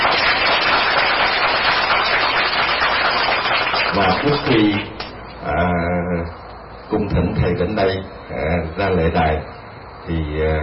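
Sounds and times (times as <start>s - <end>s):
crowd applause: 0.0s - 4.9s
speech: 4.0s - 10.6s.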